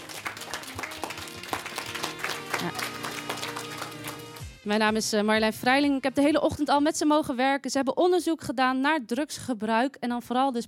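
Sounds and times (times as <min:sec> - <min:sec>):
students applauding at a school event about drugs and young people: 0:00.0 - 0:04.4
speech: 0:02.6 - 0:02.9, 0:04.6 - 0:10.6.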